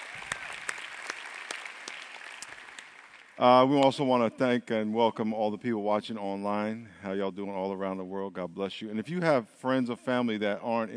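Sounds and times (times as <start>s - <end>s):
audience applause: 0.0s - 3.8s
speech: 3.4s - 10.9s.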